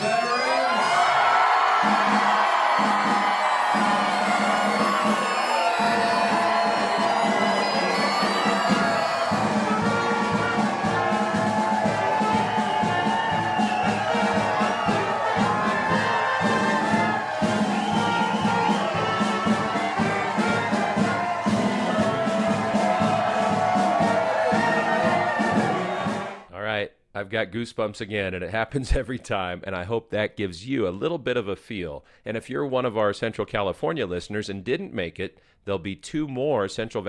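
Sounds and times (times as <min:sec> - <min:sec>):
crowd cheering to welcome veterans home: 0:00.0 - 0:26.5
speech: 0:27.4 - 0:37.0.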